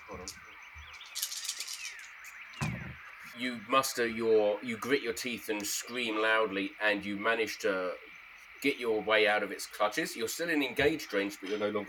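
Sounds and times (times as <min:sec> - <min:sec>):
faint steady tone: 0:00.0 - 0:11.8
dice being rolled: 0:01.0 - 0:02.1
speech: 0:03.4 - 0:11.8.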